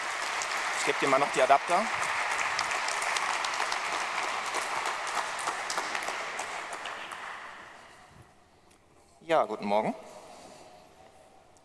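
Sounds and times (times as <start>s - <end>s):
audience applause: 0.0s - 8.0s
speech: 0.8s - 2.0s, 9.3s - 10.1s.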